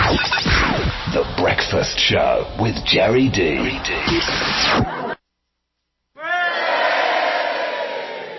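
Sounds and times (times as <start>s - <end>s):
speech: 0.1s - 5.0s
crowd cheering: 6.2s - 8.3s.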